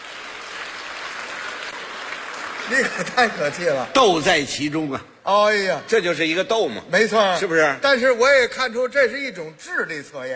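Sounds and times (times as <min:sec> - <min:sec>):
audience applause: 0:00.0 - 0:03.9
speech: 0:02.7 - 0:10.3.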